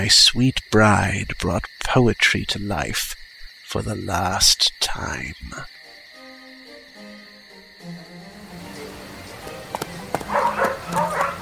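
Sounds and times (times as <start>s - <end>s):
speech: 0.0s - 5.8s
hunting dogs barking: 10.1s - 11.4s.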